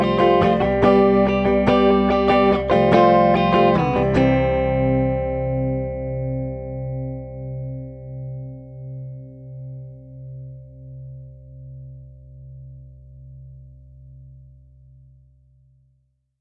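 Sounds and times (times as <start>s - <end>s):
strummy flangy guitar in C: 0.0s - 10.0s.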